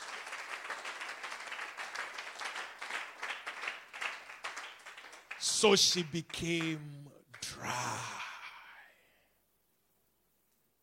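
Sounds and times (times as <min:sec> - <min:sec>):
audience clapping hands: 0:00.0 - 0:07.8
speech: 0:05.6 - 0:08.2.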